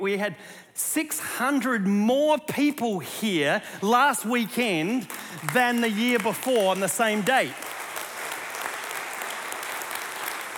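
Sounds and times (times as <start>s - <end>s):
speech: 0.0s - 7.8s
audience clapping: 4.8s - 10.5s.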